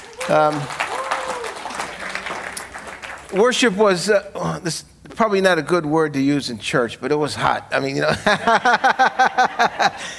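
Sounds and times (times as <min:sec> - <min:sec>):
church congregation clapping to welcome online viewers: 0:00.0 - 0:03.8
speech: 0:00.3 - 0:00.8, 0:03.3 - 0:10.1
laughter: 0:08.1 - 0:10.1.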